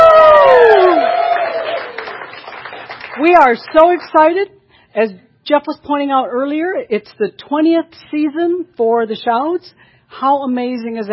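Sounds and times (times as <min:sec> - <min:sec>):
live audience cheering and applauding: 0:00.0 - 0:03.3
speech: 0:03.3 - 0:11.1.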